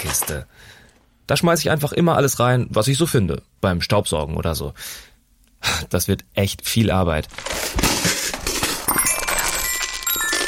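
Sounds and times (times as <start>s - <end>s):
speech: 0.0s - 8.2s
dice tumbling from a box: 7.2s - 10.4s
small metallophone tones ringing: 8.9s - 10.4s.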